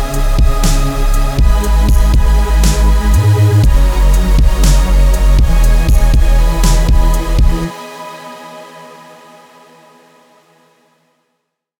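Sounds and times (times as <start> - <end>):
witch house trap synth presets: 0.0 - 8.8.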